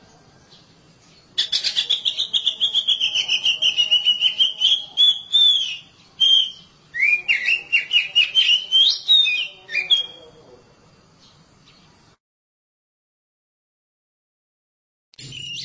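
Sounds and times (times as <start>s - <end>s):
Oriental magpie-robin song: 0.0s - 10.3s, 15.2s - 15.6s.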